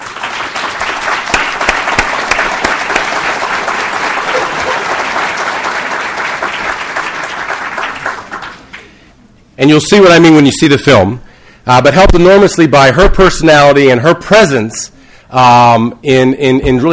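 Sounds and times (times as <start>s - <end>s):
audience applause: 0.0s - 8.9s
speech: 9.6s - 16.9s.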